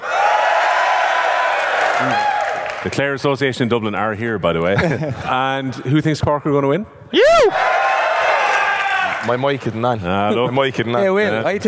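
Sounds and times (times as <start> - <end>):
crowd at a Focus Ireland charity event cheering for Clare: 0.0 - 2.8, 7.2 - 9.3
speech: 2.8 - 7.7, 9.2 - 11.6.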